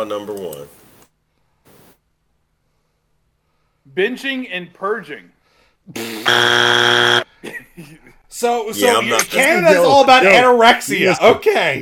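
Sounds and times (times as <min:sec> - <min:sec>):
speech: 0:00.0 - 0:00.8, 0:03.9 - 0:11.8
game show buzzer: 0:06.0 - 0:07.2.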